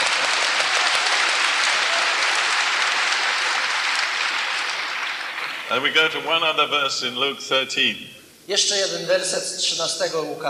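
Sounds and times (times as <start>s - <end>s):
church congregation applause: 0.0s - 6.4s
speech: 5.7s - 10.4s.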